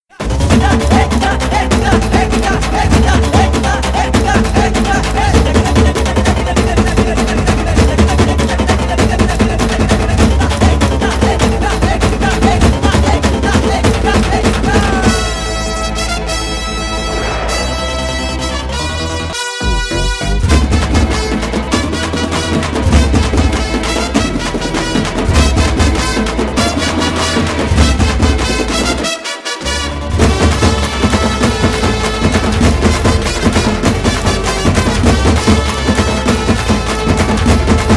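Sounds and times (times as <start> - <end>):
local background music: 0.0 - 37.9.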